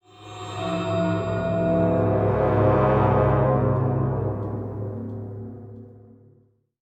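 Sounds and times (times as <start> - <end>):
cursed play stinger: 0.6 - 6.1.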